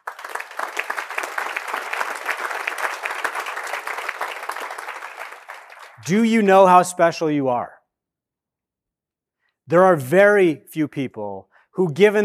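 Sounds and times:
audience applause: 0.0 - 6.0
speech: 6.1 - 7.8, 9.7 - 12.2.

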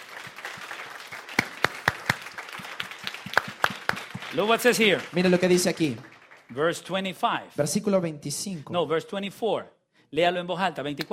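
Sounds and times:
audience applauding: 0.0 - 7.0
speech: 4.3 - 11.1.

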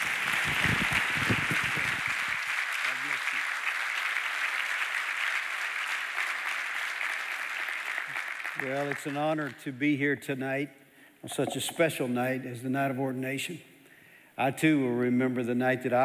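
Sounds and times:
audience applause at a ministry network's ordination night: 0.0 - 9.5
speech: 8.6 - 13.7, 14.4 - 16.0.

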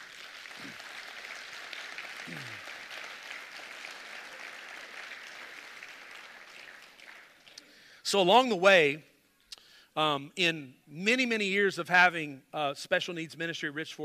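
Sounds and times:
audience applause: 0.0 - 7.9
speech: 8.1 - 9.1, 10.0 - 14.0.

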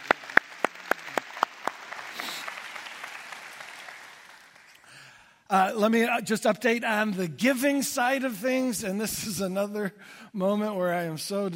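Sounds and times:
audience clapping: 0.0 - 5.2
speech: 5.5 - 11.5.

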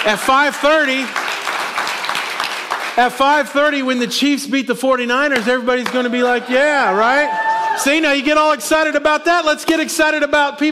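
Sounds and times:
speech: 0.0 - 1.2, 3.0 - 10.7
audience clapping: 0.0 - 4.0, 5.2 - 7.6.

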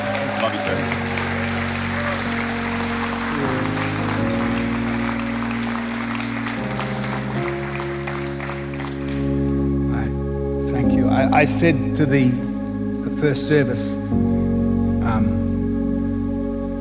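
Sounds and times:
church congregation clapping: 0.0 - 9.7
sustained musical chords: 0.0 - 16.7
speech: 11.4 - 12.5, 13.2 - 14.3.

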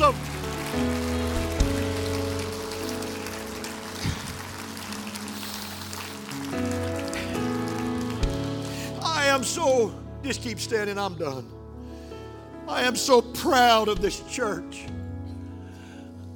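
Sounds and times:
audience clapping hands: 0.0 - 9.9
speech: 0.8 - 1.1, 9.5 - 11.6, 12.7 - 15.0.

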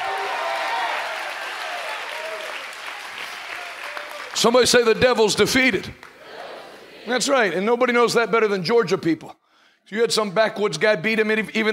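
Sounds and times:
audience clapping hands: 0.0 - 6.7
speech: 4.4 - 6.1, 7.1 - 11.7.

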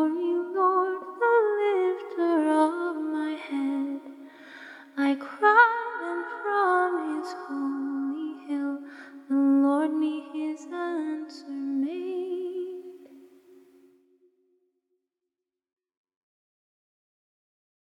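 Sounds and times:
a cappella psalm hymn singing: 0.0 - 4.3, 4.9 - 13.2.

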